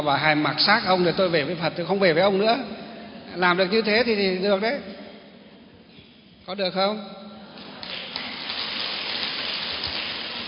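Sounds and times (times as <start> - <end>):
speech: 0.0 - 2.8, 3.4 - 5.0, 6.5 - 7.2
audience applause: 7.6 - 10.4.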